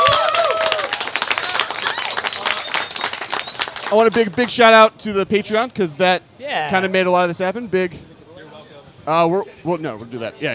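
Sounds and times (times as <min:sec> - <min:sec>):
audience applause: 0:00.0 - 0:04.5
speech: 0:03.9 - 0:08.1, 0:09.0 - 0:10.5.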